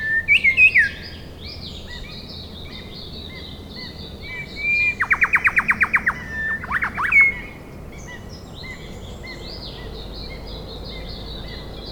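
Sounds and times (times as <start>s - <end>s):
rufous shrikethrush whistling calls, Colluricincla rufogaster: 0.0s - 9.4s.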